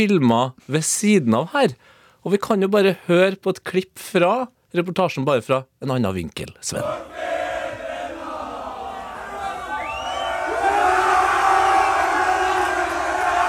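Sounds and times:
speech: 0.0 - 7.3
crowd singing and cheering: 6.8 - 13.4.

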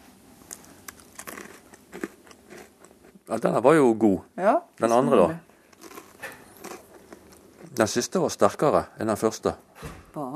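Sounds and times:
biting and chewing dried stockfish: 0.5 - 3.2, 5.7 - 7.8
speech: 3.3 - 5.5, 7.8 - 10.3.

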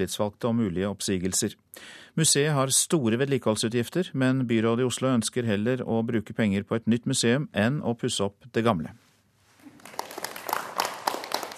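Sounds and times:
speech: 0.0 - 9.0
scattered applause in the festival hall at Tøyen: 9.7 - 11.5.

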